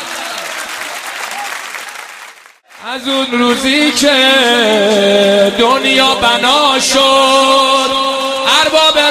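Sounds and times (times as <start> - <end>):
crowd clapping along to a religious chant: 0.0 - 6.6
speech: 2.8 - 9.0.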